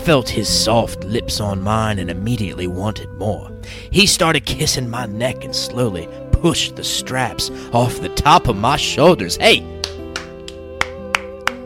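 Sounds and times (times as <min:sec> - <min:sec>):
speech: 0:00.0 - 0:10.0
hand clapping like a seal: 0:09.8 - 0:11.6.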